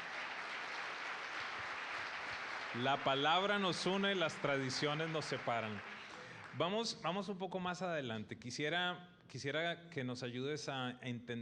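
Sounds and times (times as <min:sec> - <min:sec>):
audience applause: 0:00.0 - 0:06.7
speech: 0:02.7 - 0:06.0, 0:06.6 - 0:11.3.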